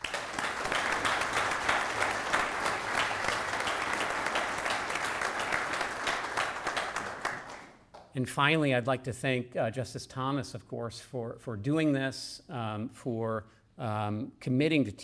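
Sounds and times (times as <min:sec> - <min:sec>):
round of applause: 0:00.0 - 0:07.8
speech: 0:08.2 - 0:15.0.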